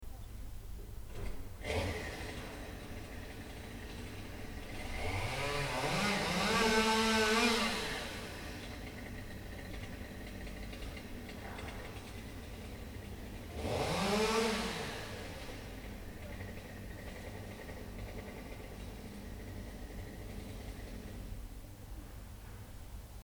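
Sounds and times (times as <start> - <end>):
chainsaw: 1.2 - 21.5.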